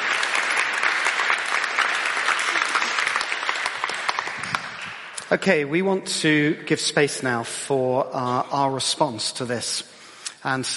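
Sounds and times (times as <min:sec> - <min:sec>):
audience applause: 0:00.0 - 0:05.2
speech: 0:05.3 - 0:10.7.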